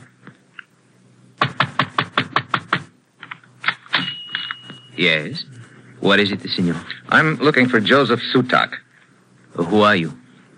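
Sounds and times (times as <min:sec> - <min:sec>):
pounding on a wooden door: 0:01.4 - 0:02.9
speech: 0:05.0 - 0:08.8, 0:09.6 - 0:10.2.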